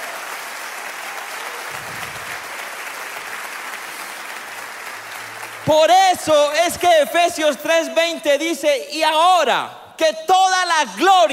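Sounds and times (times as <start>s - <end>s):
audience applause: 0.0s - 7.0s
speech: 5.7s - 11.3s.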